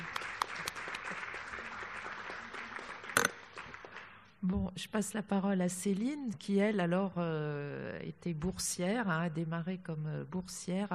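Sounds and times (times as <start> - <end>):
audience applause: 0.0 - 4.2
speech: 4.5 - 10.9.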